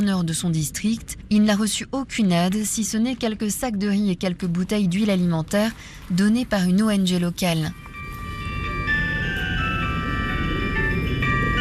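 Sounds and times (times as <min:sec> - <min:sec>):
speech: 0:00.0 - 0:07.8
small black Nokia mobile phone ringtone: 0:07.7 - 0:11.6.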